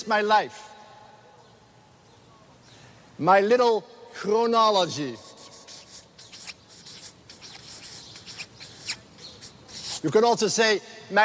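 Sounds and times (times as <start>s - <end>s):
speech: 0.0s - 0.7s, 3.2s - 5.2s, 10.0s - 11.2s
pen or marker drawing a line on a board: 5.2s - 10.2s.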